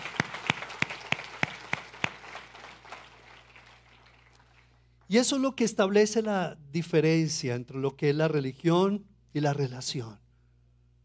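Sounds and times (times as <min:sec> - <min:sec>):
audience clapping: 0:00.0 - 0:05.0
speech: 0:05.1 - 0:10.2.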